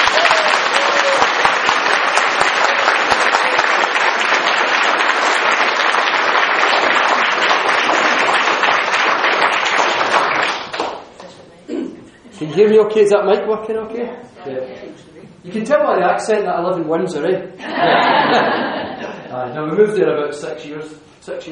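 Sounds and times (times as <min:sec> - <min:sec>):
audience applause at a scientific society event in Glasgow welcoming a speaker: 0:00.0 - 0:11.1
speech: 0:12.6 - 0:21.5
laughter: 0:17.6 - 0:19.3.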